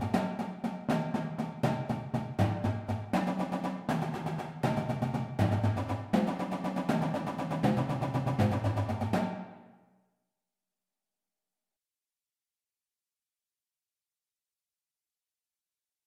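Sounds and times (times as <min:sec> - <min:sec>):
beginner drumline warmup paradiddles: 0:00.0 - 0:09.5.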